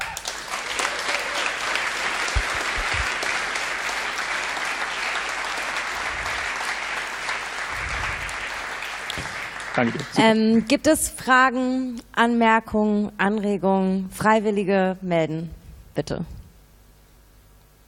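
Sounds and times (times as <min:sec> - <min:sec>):
audience applause: 0:00.0 - 0:10.4
speech: 0:09.8 - 0:16.4.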